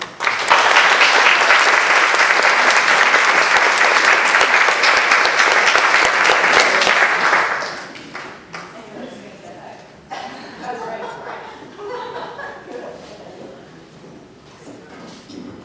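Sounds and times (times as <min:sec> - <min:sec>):
audience applause welcoming a guest onstage: 0:00.0 - 0:08.8
laughter: 0:10.3 - 0:13.6.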